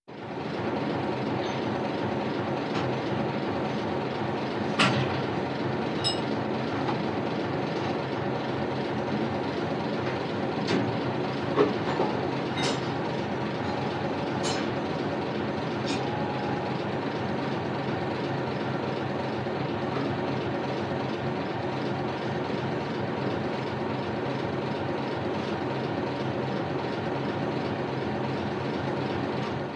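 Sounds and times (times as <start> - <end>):
fishing boat: 0.1 - 29.7.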